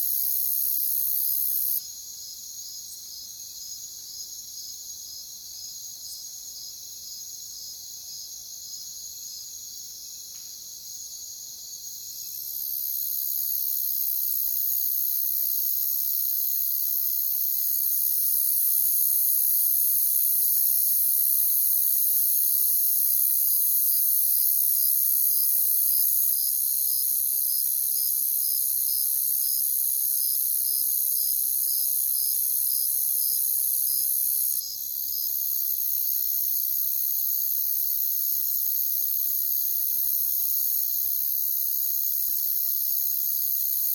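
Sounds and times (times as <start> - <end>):
cricket chorus: 0.0 - 43.9.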